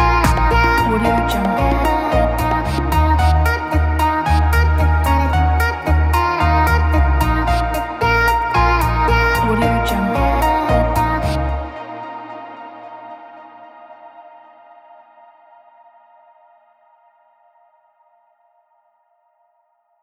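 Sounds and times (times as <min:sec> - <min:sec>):
luxury lounge chill house music: 0:00.0 - 0:14.2.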